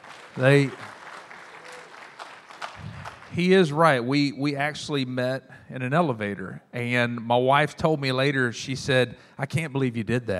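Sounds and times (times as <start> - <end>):
audience applause and hand clapping: 0.0 - 3.9
speech: 0.4 - 0.9, 3.4 - 10.3.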